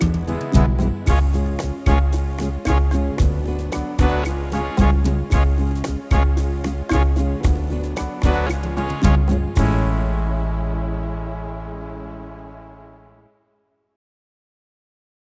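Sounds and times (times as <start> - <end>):
latin rumba guitar style on a keyboard: 0.0 - 12.2.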